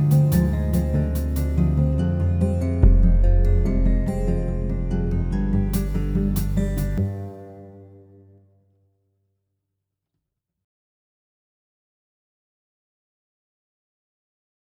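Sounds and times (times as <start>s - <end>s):
etude in C harmonic minor: 0.0s - 7.9s.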